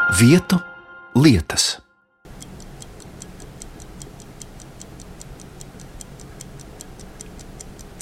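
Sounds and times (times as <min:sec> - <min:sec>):
speech: 0:00.2 - 0:00.7, 0:01.3 - 0:01.8
chronometer ticking: 0:02.3 - 0:08.0.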